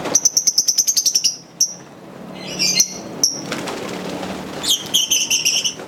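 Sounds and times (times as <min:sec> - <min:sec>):
lovebird giving short bright chirps and buzzy bursts: 0:00.1 - 0:03.4, 0:04.6 - 0:05.8.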